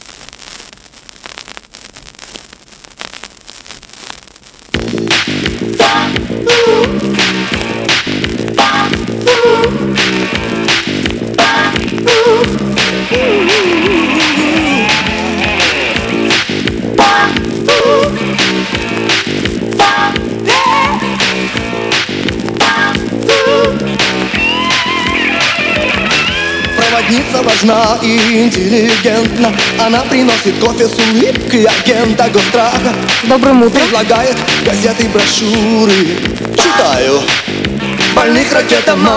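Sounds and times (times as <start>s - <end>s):
vinyl record hissing and crackling: 0.0s - 39.1s
speech: 27.8s - 37.4s, 38.2s - 39.1s.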